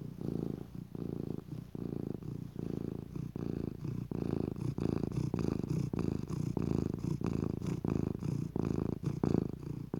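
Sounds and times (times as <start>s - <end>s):
domestic cat purring deeply: 0.0s - 9.9s.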